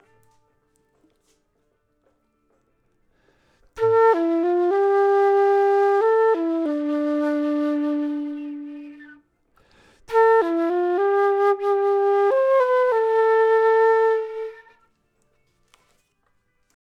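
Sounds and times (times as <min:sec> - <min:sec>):
flute: 0:00.0 - 0:01.4, 0:03.2 - 0:16.2.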